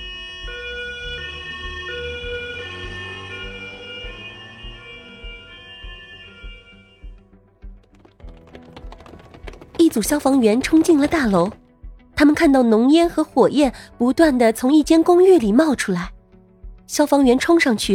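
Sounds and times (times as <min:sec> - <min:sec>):
ambulance siren: 0:00.0 - 0:08.0
sharp clattering ticks: 0:07.8 - 0:11.6
speech: 0:09.8 - 0:11.6, 0:12.2 - 0:16.1, 0:16.9 - 0:17.9.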